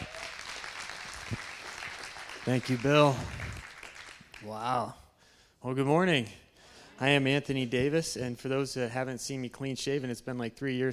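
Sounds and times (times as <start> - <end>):
audience applause: 0.0 - 4.6
speech: 2.5 - 3.4, 4.4 - 5.0, 5.6 - 6.4, 7.0 - 10.9.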